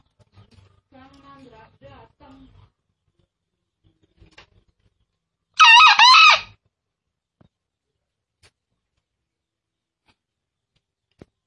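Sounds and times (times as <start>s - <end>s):
green junglefowl crowing: 5.6s - 6.5s.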